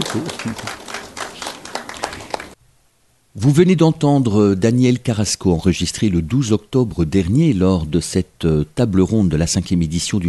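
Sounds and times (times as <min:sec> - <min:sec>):
audience applause: 0:00.0 - 0:02.6
speech: 0:00.1 - 0:00.9, 0:03.4 - 0:10.2.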